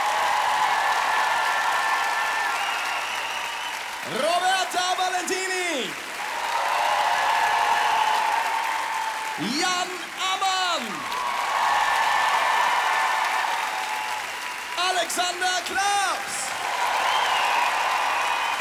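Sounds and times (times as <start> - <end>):
audience applause: 0.0 - 18.5
speech: 4.1 - 4.5, 15.1 - 16.4.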